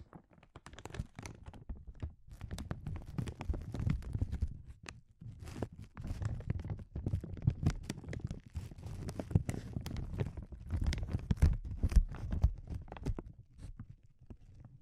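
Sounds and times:
sensitive crinkles with sharp crackles and rustles: 0.0 - 14.8.

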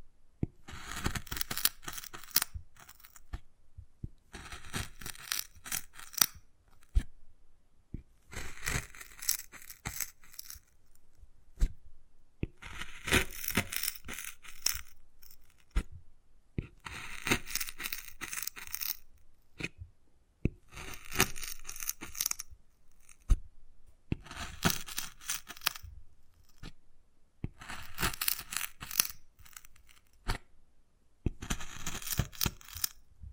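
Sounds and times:
wood carving scraping and scratching strokes: 0.6 - 3.4, 4.3 - 7.1, 8.2 - 11.8, 12.5 - 15.9, 16.6 - 19.7, 20.6 - 23.4, 24.1 - 26.8, 27.5 - 30.4, 31.3 - 33.0.

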